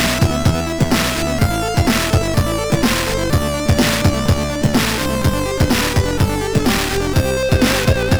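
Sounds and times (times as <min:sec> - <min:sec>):
game music on a MOS6581R3 SID chip: 0:00.0 - 0:08.1.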